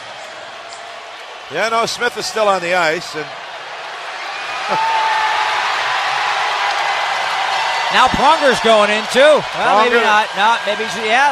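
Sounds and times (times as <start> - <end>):
hockey arena crowd roar at a San Jose Sharks versus St. Louis Blues game: 0.0 - 11.3
speech: 1.5 - 3.4, 4.7 - 4.9, 7.9 - 11.3.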